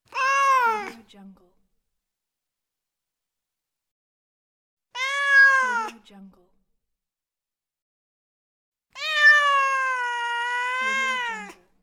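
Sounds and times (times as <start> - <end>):
cat: 0.1 - 1.0, 4.9 - 6.0, 8.9 - 11.8.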